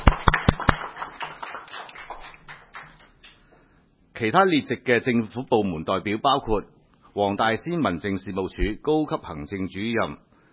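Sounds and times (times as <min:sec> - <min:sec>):
meeting attendees applauding: 0:00.0 - 0:03.4
speech: 0:04.2 - 0:10.3.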